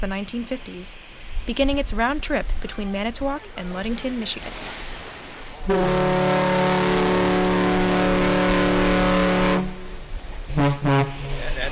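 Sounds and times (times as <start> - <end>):
speech: 0.0 - 4.9, 5.6 - 6.3
car ferry deep horn blasts: 5.6 - 11.7.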